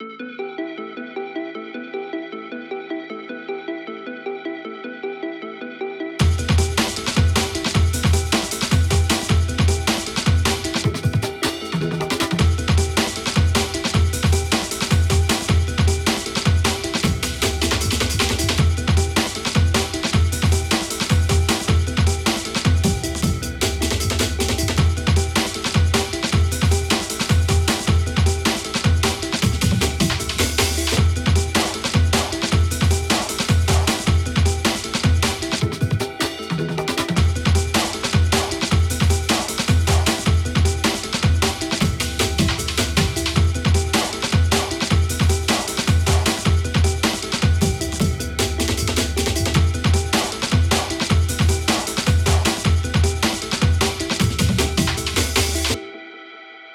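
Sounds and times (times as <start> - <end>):
drum and bass music: 6.2 - 55.9.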